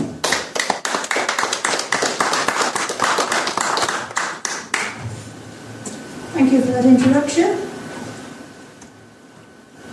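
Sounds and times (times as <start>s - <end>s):
audience clapping: 0.0s - 5.0s
speech: 6.5s - 7.7s.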